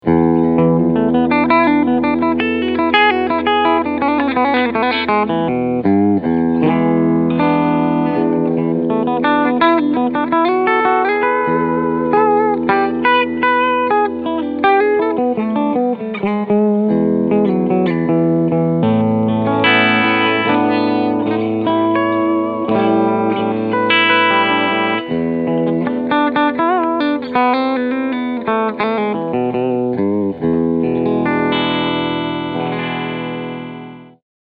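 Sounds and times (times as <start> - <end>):
Steg pickup clean guitar picking: 0.0 - 34.2.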